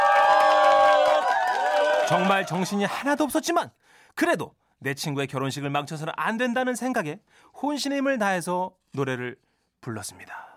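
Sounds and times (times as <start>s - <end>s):
wedding guests applauding and cheering: 0.0s - 3.3s
speech: 2.1s - 10.5s.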